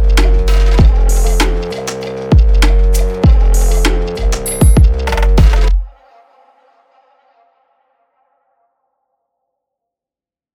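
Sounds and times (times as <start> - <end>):
instrumental music: 0.0 - 5.9.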